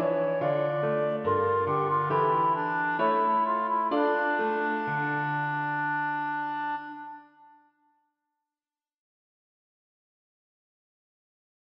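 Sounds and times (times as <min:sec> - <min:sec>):
clarinet and piano minuet: 0:00.0 - 0:07.8.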